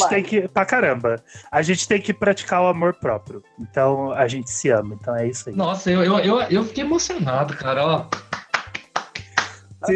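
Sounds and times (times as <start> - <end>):
speech: 0.0 - 8.3, 9.8 - 9.9
scattered hand claps: 8.0 - 9.8.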